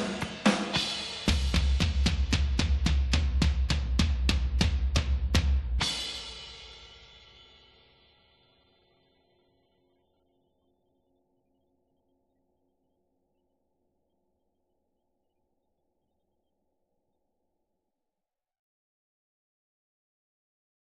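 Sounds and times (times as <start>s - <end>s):
snare drum: 0.0s - 6.5s
tom drums: 0.0s - 7.5s.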